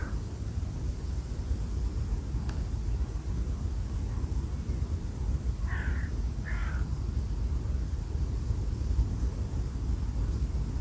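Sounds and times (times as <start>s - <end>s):
strong wind noise: 0.0s - 10.8s
bird calls: 5.6s - 7.0s.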